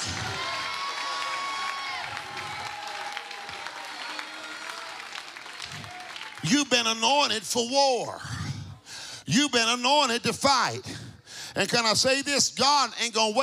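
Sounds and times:
scattered clapping: 0.0 - 6.5
audience shouting praise and cheering: 0.0 - 7.3
speech: 6.4 - 8.4, 9.3 - 11.0, 11.6 - 13.4.

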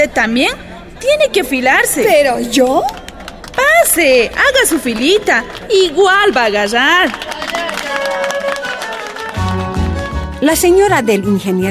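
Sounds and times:
speech: 0.0 - 3.0, 3.6 - 8.7, 10.4 - 11.6
group clapping: 2.7 - 10.9.

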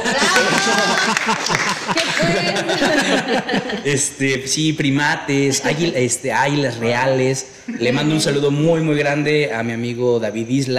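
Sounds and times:
audience applause: 0.0 - 3.8
laughter: 0.0 - 4.4, 7.7 - 8.6
speech: 0.8 - 10.7.

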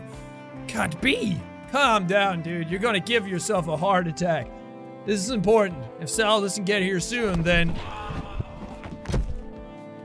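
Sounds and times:
speech: 0.8 - 8.2
dull thuds of someone falling from a treehouse: 7.3 - 9.6.

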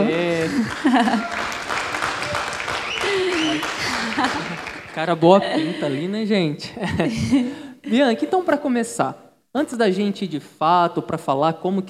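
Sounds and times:
speech: 0.0 - 1.6, 3.6 - 11.8
applause: 0.0 - 5.3
laughter: 0.0 - 7.6.

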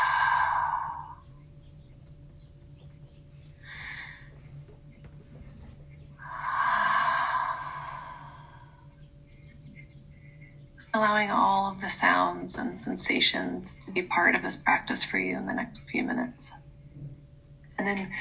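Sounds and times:
deep breaths, exhaling through the mouth: 0.0 - 1.3, 3.6 - 4.4, 6.2 - 8.9
speech: 11.0 - 16.6, 17.8 - 18.1.

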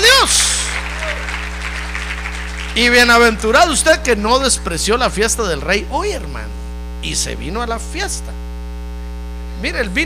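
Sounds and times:
audience applause: 0.0 - 4.2
speech: 2.8 - 8.4, 9.6 - 10.0.

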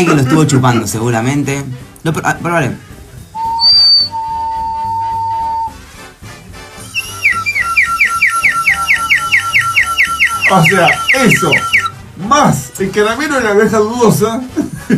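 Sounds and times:
speech: 0.0 - 2.9, 10.5 - 14.9
spirit-caller whistle blowing: 3.4 - 5.7, 6.8 - 11.9.

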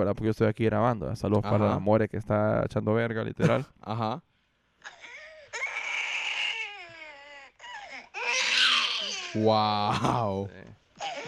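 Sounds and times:
speech: 0.0 - 5.0, 9.3 - 11.1
baby girl crying, refusing to sleep: 4.8 - 9.5, 11.0 - 11.2.

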